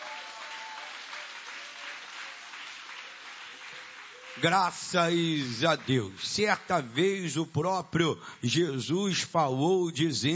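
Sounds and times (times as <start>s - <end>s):
audience clapping hands: 0.0s - 7.2s
speech: 4.4s - 10.3s.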